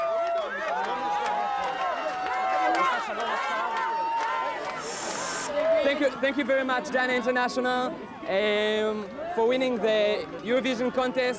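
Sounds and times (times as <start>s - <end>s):
large excited crowd at an airport cheering and shouting in welcome: 0.0s - 7.4s
speech: 5.9s - 11.3s.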